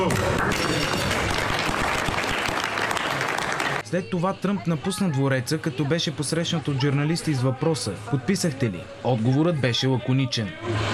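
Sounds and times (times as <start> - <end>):
applause after signing ceremony: 0.0 - 3.8
speech: 3.9 - 10.9.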